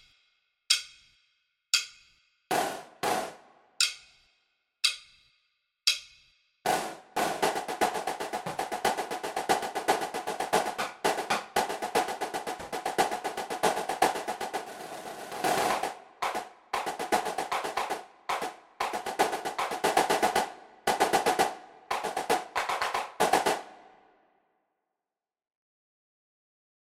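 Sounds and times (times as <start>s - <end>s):
snare drum cadence: 2.5s - 3.5s, 6.7s - 24.0s.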